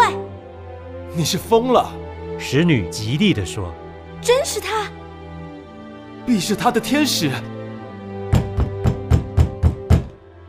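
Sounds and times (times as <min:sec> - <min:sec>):
speech: 0:01.2 - 0:05.0, 0:06.3 - 0:07.5
knocking on a door: 0:08.3 - 0:10.2.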